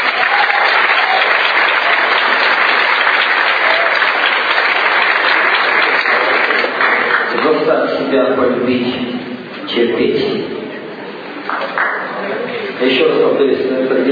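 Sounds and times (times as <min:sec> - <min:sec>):
audience applause: 0:00.0 - 0:07.4, 0:11.4 - 0:12.6
speech: 0:08.7 - 0:09.1, 0:09.8 - 0:10.5, 0:12.8 - 0:14.1.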